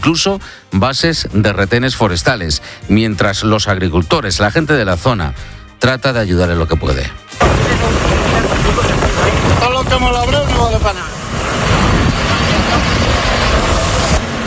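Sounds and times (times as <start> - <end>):
speech: 0.0 - 8.1, 9.9 - 11.2
helicopter at wildfire: 7.4 - 14.4.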